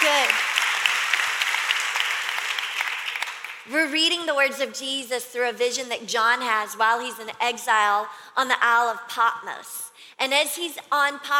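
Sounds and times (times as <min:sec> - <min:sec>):
crowd applauding: 0:00.0 - 0:03.7
speech: 0:03.7 - 0:11.3.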